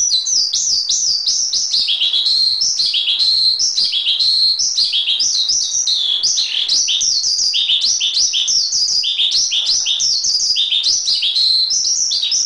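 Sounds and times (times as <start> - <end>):
Oriental magpie-robin singing a continuous warble: 1.7 - 12.4.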